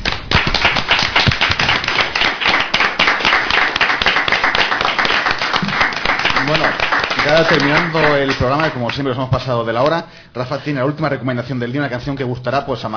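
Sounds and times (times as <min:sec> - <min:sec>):
audience applause: 0:00.0 - 0:09.0
speech: 0:06.6 - 0:12.9.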